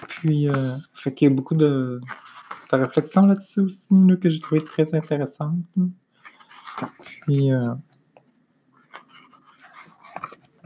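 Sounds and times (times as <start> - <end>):
book pages being leafed through: 0.0 - 3.7, 4.3 - 5.3, 6.2 - 7.8, 8.8 - 10.6
speech: 0.2 - 6.0, 6.8 - 7.9.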